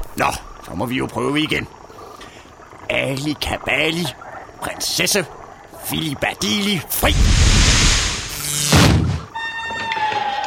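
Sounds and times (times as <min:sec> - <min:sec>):
speech: 0:00.2 - 0:01.8, 0:02.9 - 0:07.4
cellar door opening: 0:08.8 - 0:10.4.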